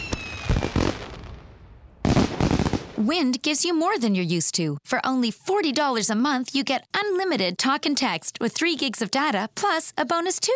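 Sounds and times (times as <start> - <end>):
celebratory fireworks launching and bursting: 0.0 - 3.1
speech: 3.0 - 10.5.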